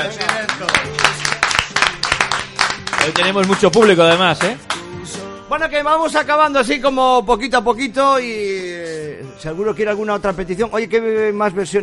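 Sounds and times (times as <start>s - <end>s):
audience applause: 0.0s - 4.5s
speech: 3.1s - 11.8s.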